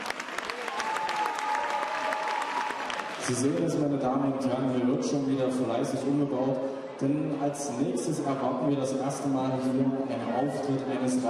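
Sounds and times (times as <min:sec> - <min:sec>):
audience applause: 0:00.0 - 0:03.6
speech: 0:03.2 - 0:11.2.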